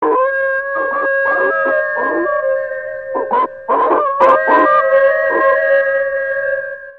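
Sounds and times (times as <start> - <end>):
wolf howling: 0.0 - 6.9.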